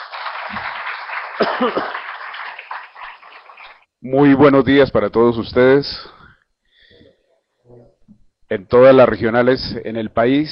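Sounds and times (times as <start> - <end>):
audience applause: 0.0 - 3.8
speech: 1.4 - 2.0, 4.0 - 6.2, 8.5 - 10.5.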